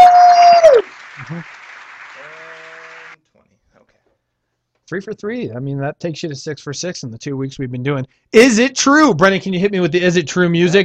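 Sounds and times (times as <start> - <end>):
applause: 0.0 - 3.2
speech: 4.9 - 10.8.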